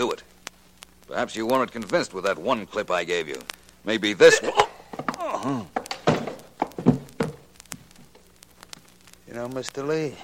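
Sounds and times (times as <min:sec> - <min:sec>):
speech: 0:00.0 - 0:00.3, 0:01.2 - 0:04.7, 0:05.4 - 0:05.8, 0:09.4 - 0:10.2
man struck over the head with a gun butt: 0:04.9 - 0:07.5.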